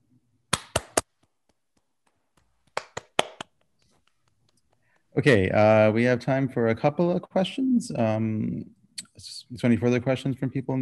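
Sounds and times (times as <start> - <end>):
applause over a video call: 0.5 - 3.7
speech: 5.2 - 10.8.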